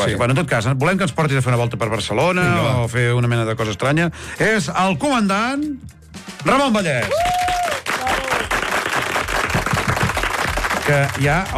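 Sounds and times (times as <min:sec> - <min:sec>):
speech: 0:00.0 - 0:07.6, 0:10.9 - 0:11.5
audience applause: 0:07.0 - 0:11.5.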